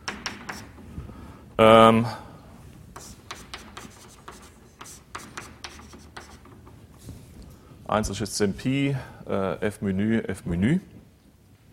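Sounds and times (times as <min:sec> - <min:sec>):
writing scratching on a board during a lecture: 0:00.0 - 0:00.8, 0:03.0 - 0:06.8
speech: 0:01.6 - 0:02.2, 0:07.9 - 0:11.0.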